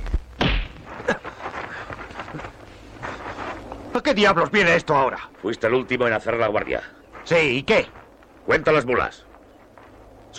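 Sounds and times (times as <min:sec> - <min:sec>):
low rumble: 0:00.0 - 0:10.3
punch to the face in a fistfight in a 1973 western film: 0:00.4 - 0:00.8
speech: 0:04.0 - 0:09.3.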